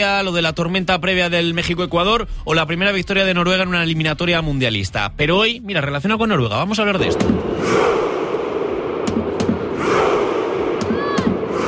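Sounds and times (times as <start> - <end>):
speech: 0.0 - 8.0
large crowd of football fans roaring: 7.0 - 11.6
sharp booming hits: 7.0 - 11.6.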